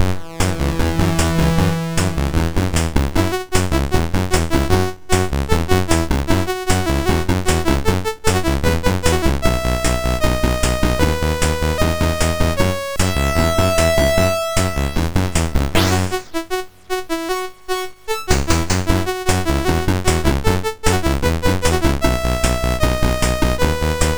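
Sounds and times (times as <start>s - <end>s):
MOS 6581R2 SID chip music: 0.0s - 24.1s.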